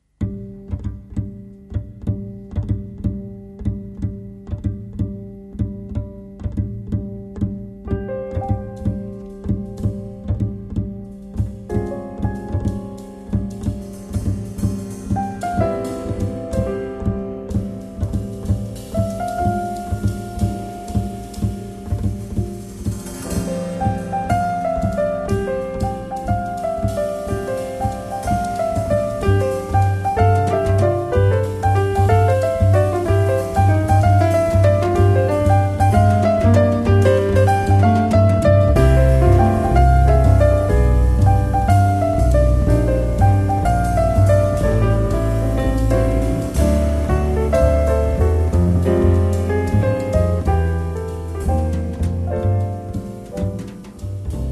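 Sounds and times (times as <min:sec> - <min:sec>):
bass: 0:00.0 - 0:54.4.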